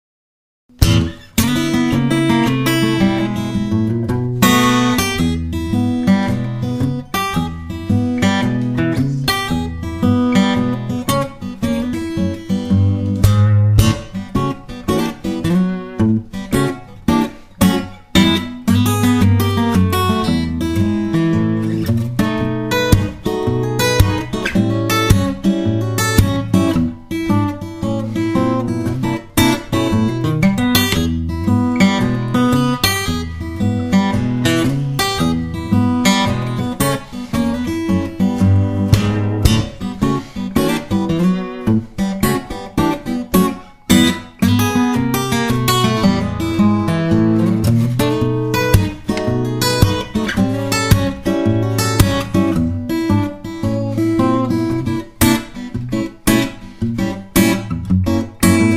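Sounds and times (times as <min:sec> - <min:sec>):
country blues music: 0:00.8 - 0:58.7.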